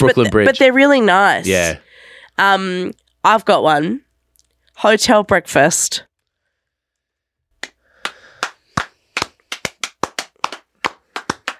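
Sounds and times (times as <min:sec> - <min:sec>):
speech: 0:00.0 - 0:01.8, 0:02.4 - 0:04.0, 0:04.8 - 0:06.1
hand clapping: 0:07.6 - 0:11.5.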